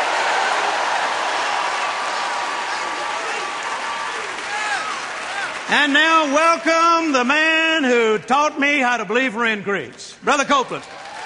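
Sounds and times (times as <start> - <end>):
church congregation shouting praise: 0.0 - 7.5
church congregation applauding: 0.0 - 7.9, 10.6 - 11.2
speech: 5.7 - 11.0.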